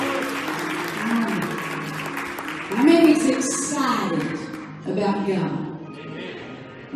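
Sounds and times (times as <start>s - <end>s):
church congregation hand clap of praise: 0.0s - 4.8s
speech: 5.0s - 5.7s.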